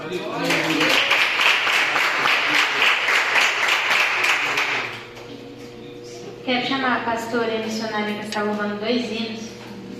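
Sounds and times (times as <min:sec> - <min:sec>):
speech: 0:00.1 - 0:00.8, 0:06.8 - 0:09.5
audience applause: 0:00.4 - 0:05.0.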